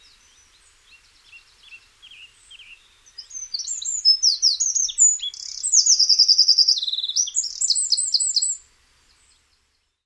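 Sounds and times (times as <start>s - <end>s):
wren: 2.6s - 8.6s.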